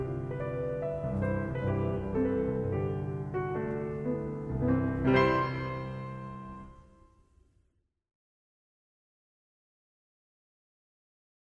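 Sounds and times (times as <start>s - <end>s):
piano mazurka in C major: 0.0s - 7.3s.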